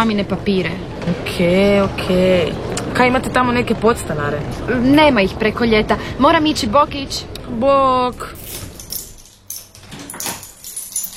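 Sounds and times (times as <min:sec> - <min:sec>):
speech: 0:00.0 - 0:08.6
keys jangling while trying a door lock: 0:08.4 - 0:11.1.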